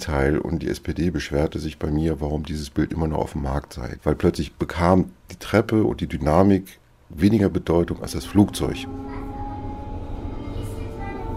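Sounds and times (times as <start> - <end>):
speech: 0.0 - 9.2
S-Bahn commuter train rumbling at a Berlin station: 7.8 - 11.3.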